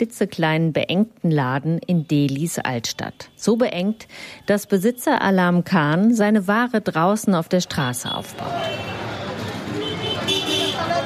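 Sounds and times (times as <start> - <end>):
speech: 0.0 - 9.2
street traffic noise in Delhi's old town: 1.8 - 11.0
horn toots: 8.1 - 11.0.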